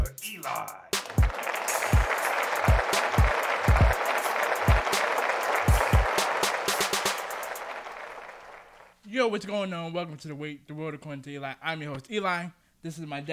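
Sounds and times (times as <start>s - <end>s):
speech: 0.4s - 0.9s, 9.2s - 13.3s
audience applause welcoming a show's host: 1.0s - 8.9s.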